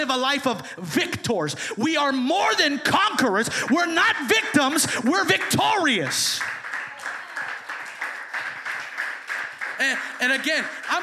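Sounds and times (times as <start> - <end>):
speech: 0.0 - 6.6, 9.8 - 11.0
part of the room clapping: 3.2 - 11.0.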